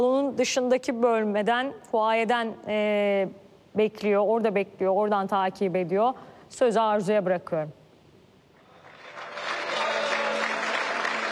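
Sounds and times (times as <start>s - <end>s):
speech: 0.0s - 7.8s
audience applause: 8.7s - 11.2s.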